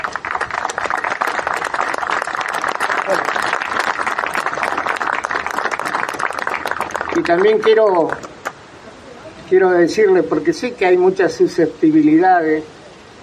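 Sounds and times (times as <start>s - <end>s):
audience applause: 0.0s - 8.6s
speech: 7.2s - 8.3s, 9.5s - 12.8s.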